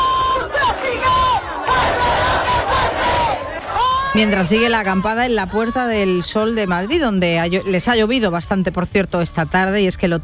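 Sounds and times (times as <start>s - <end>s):
housing protest crowd chanting in plaza: 0.0s - 7.9s
speech: 4.2s - 10.2s.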